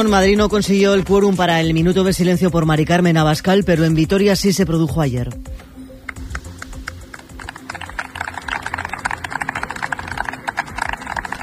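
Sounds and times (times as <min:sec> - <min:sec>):
speech: 0:00.0 - 0:05.6
crowd clapping at end of a gathering: 0:06.1 - 0:11.4.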